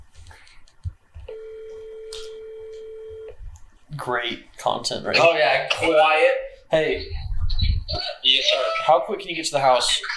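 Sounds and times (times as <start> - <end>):
telephone ringing tone: 1.3 - 3.4
speech: 4.0 - 7.2, 7.9 - 10.1.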